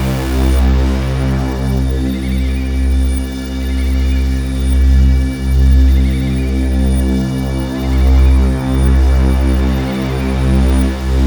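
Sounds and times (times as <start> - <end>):
cyber synth drone: 0.0 - 4.7, 7.6 - 11.2
synth pads: 0.0 - 11.2.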